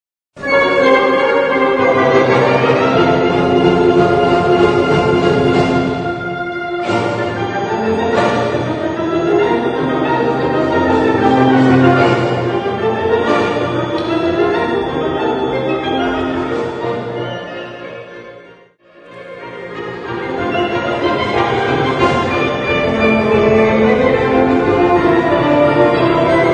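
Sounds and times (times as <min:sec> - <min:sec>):
orchestral galop: 0:00.4 - 0:26.5.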